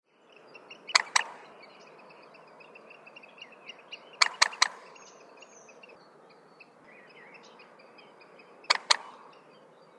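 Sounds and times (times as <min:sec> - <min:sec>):
common moorhen calling: 0:00.3 - 0:09.9.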